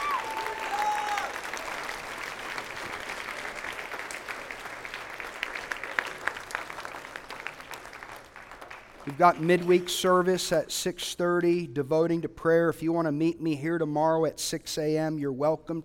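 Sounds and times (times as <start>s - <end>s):
audience clapping and shouting praise: 0.0s - 10.2s
speech: 9.1s - 15.8s.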